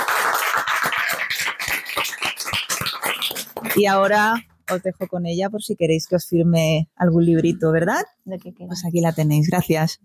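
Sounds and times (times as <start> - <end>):
audience applause: 0.0 - 3.8
speech: 3.8 - 10.0.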